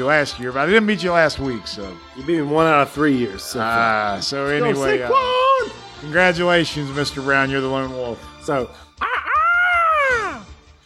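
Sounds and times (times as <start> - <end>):
speech: 0.0 - 8.9
voice imitating a dodo bird call: 9.0 - 10.4.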